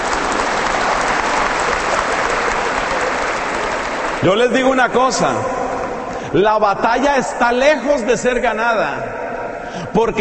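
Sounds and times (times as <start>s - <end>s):
audience applause: 0.0s - 5.4s
speech: 4.2s - 5.6s, 6.3s - 9.2s, 9.8s - 10.1s.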